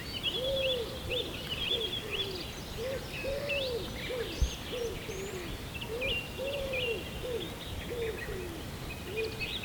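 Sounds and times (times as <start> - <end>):
low hooting bird calls: 0.2 - 9.5.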